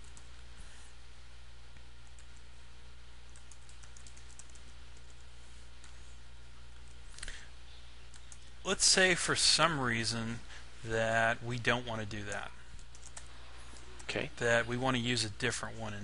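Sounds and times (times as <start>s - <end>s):
computer keyboard keystrokes as code is typed: 3.3s - 5.1s, 12.3s - 14.1s
speech: 8.7s - 12.6s, 14.1s - 16.0s.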